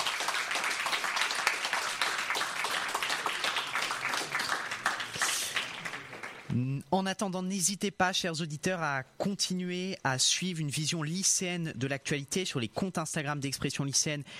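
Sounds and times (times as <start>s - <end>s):
audience applause: 0.0s - 6.5s
speech: 6.6s - 14.3s.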